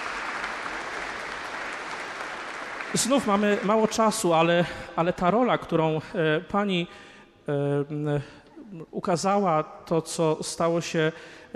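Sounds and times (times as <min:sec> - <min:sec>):
audience applauding a guest at an event in Kalisz: 0:00.0 - 0:04.4
speech: 0:02.9 - 0:11.5.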